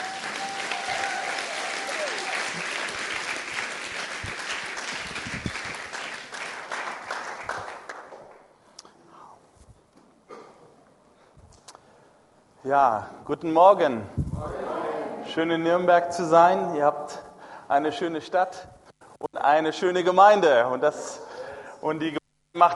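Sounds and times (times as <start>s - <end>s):
audience applause: 0.0s - 8.4s
speech: 12.7s - 14.6s, 15.4s - 16.9s, 17.7s - 18.8s, 19.4s - 21.1s, 21.8s - 22.7s.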